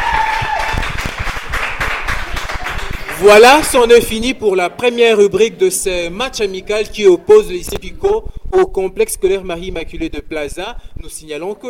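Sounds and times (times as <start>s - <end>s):
audience applause: 0.0s - 3.7s
speech: 3.2s - 11.6s.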